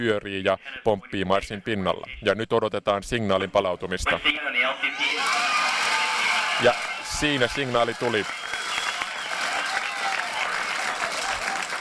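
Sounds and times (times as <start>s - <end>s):
speech: 0.0s - 5.3s, 6.6s - 8.5s
mission control staff cheering: 4.9s - 11.7s
mission control staff applauding: 5.0s - 11.7s.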